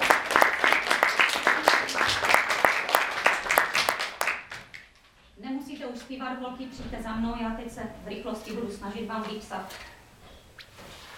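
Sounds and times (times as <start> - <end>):
audience applause: 0.0 - 4.9
speech: 6.1 - 9.9.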